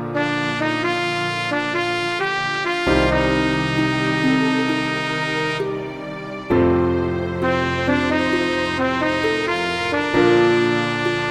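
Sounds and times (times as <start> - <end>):
Christian trumpet music: 0.2 - 6.2, 7.4 - 11.3.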